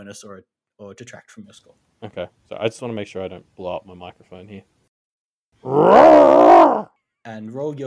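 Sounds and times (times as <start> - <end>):
speech: 0.1 - 4.8, 5.6 - 7.8
person imitating an animal growl: 5.6 - 6.9.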